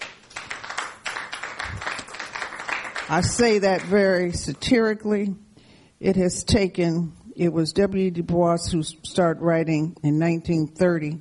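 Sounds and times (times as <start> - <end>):
audience applause: 0.0 - 4.0
speech: 3.1 - 5.4, 6.0 - 11.1.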